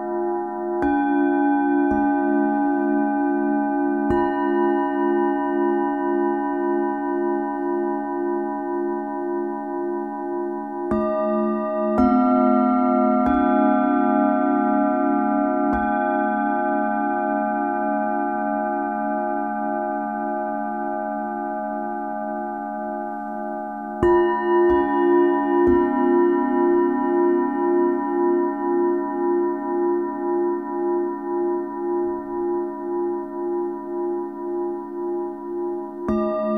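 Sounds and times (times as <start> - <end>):
singing bowls for sound meditation: 0.0 - 36.5.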